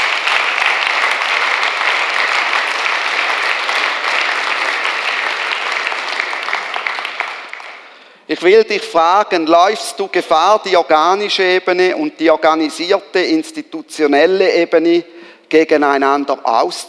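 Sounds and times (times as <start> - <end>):
crowd applauding: 0.0 - 8.1
speech: 8.3 - 16.8.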